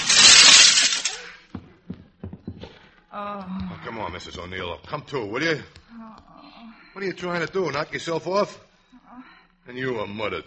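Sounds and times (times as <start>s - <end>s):
glass shards falling: 0.0s - 1.3s
window glass being smashed: 0.0s - 1.3s
speech: 3.2s - 10.4s.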